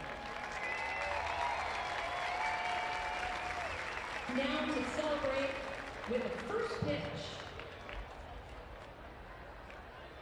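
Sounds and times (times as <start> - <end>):
faint whistles and cheers: 0.0 - 4.4
audience applause: 0.0 - 9.6
speech: 4.3 - 7.5.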